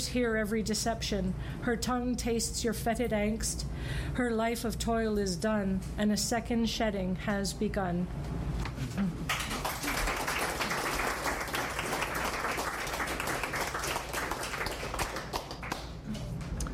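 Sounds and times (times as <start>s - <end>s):
speech: 0.0s - 8.4s
audience applause after a poetry reading: 9.3s - 16.2s.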